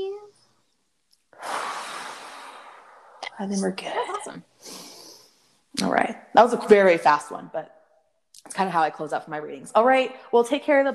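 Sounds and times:
deep breath in through the nose and out through the mouth: 1.4 - 3.2, 4.6 - 5.7
speech: 3.4 - 4.9, 5.7 - 7.8, 8.4 - 10.9.

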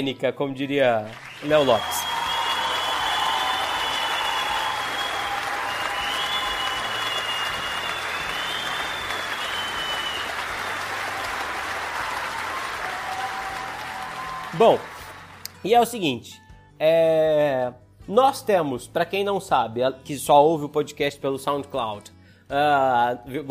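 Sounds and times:
speech: 0.0 - 2.2, 14.6 - 14.9, 15.6 - 23.4
applause sound effect: 0.6 - 15.9.

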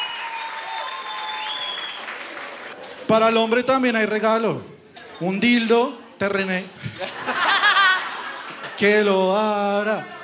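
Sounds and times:
whistle-like tones: 0.0 - 2.2
audience applause: 0.0 - 3.1
speech: 3.1 - 7.4, 8.8 - 10.2
laughter: 6.8 - 8.8.

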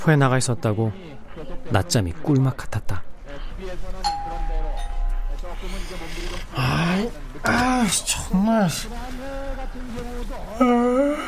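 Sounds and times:
speech: 0.0 - 4.2, 5.6 - 11.2
doorbell ringing: 4.1 - 5.4.

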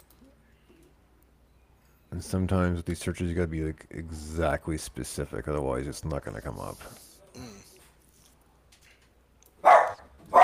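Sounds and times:
speech: 2.2 - 7.1
human voice: 7.2 - 7.9
dog barking: 9.6 - 10.4.

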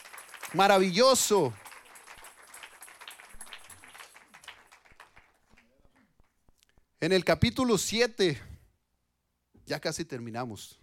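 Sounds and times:
audience applause: 0.0 - 6.2
speech: 0.5 - 1.6, 7.0 - 8.5, 9.7 - 10.8.

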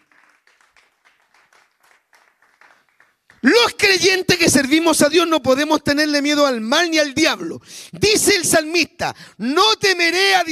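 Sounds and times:
audience clapping in praise: 0.0 - 3.9
speech: 3.4 - 10.5.

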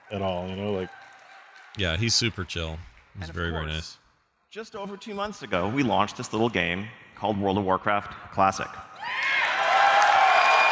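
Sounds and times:
scattered clapping: 0.0 - 3.5, 9.2 - 10.7
speech: 0.1 - 1.1, 1.8 - 9.2
large crowd cheering and whooping: 9.0 - 10.7.

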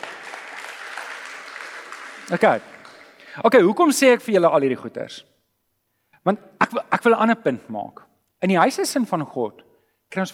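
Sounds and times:
crowd applauding: 0.0 - 3.4
speech: 2.3 - 2.7, 3.4 - 5.3, 6.2 - 10.3.

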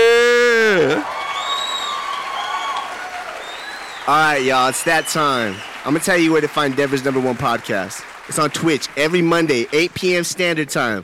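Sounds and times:
drawn-out vocal whoop: 0.0 - 3.5
crowd noise: 0.0 - 11.0
audience applause: 0.9 - 11.0
speech: 4.1 - 11.0.

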